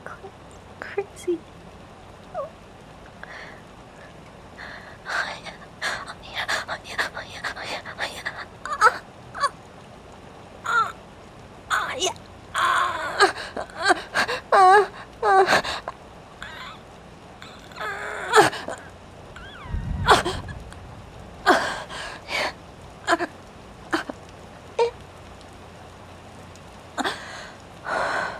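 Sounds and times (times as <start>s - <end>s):
rain: 0.0s - 28.3s.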